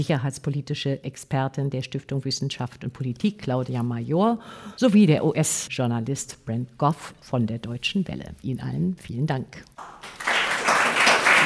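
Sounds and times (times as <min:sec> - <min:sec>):
speech: 0:00.0 - 0:10.2
crowd applauding: 0:09.8 - 0:11.4.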